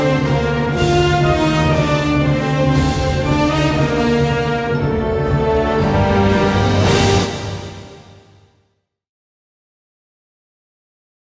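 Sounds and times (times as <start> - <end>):
national anthem music: 0.0 - 8.5.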